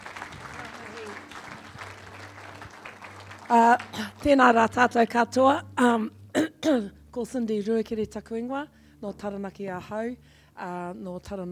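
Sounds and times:
audience applauding to welcome a speaker to the stage: 0.0s - 4.2s
speech: 3.5s - 11.5s.

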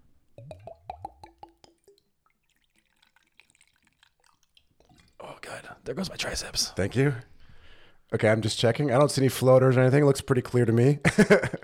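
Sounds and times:
liquid pouring from a heavy bottle: 0.3s - 5.5s
fizzy splashing: 0.4s - 6.6s
speech: 5.6s - 7.3s, 8.1s - 11.6s.

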